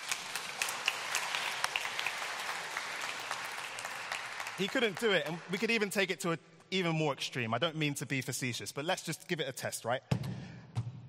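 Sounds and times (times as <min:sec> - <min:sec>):
round of applause: 0:00.0 - 0:06.1
speech: 0:04.6 - 0:10.3.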